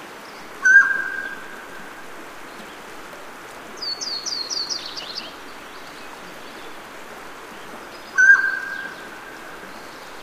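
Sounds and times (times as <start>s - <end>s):
mountain quail ringing call: 0.6s - 1.4s.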